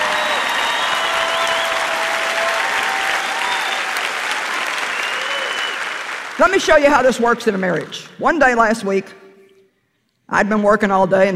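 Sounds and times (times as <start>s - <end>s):
whistles: 0.0s - 6.0s
large audience clapping loudly: 0.0s - 8.1s
speech: 6.4s - 9.2s, 10.3s - 11.3s.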